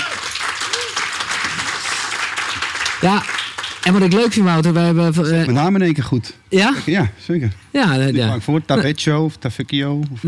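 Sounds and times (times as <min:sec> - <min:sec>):
audience applause welcoming a guest: 0:00.0 - 0:04.7
speech: 0:03.0 - 0:10.2.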